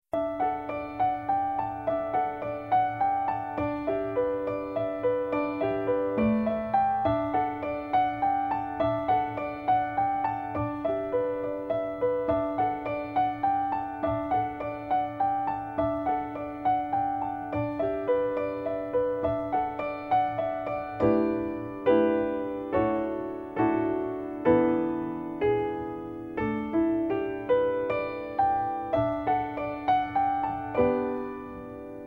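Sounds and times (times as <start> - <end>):
instrumental music: 0.1 - 32.0.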